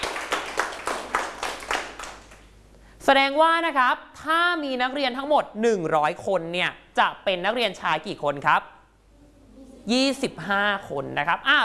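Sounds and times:
classroom students clapping for a classmate: 0:00.0 - 0:02.5
speech: 0:03.1 - 0:08.7, 0:09.8 - 0:11.6.

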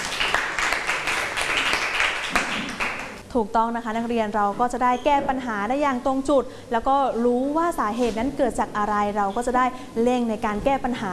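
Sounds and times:
students clapping: 0:00.0 - 0:03.2
speech: 0:03.3 - 0:11.1.

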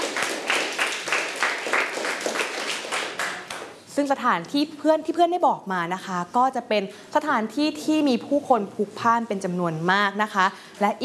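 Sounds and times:
group of children clapping rhythmically: 0:00.0 - 0:03.8
speech: 0:04.0 - 0:11.0.

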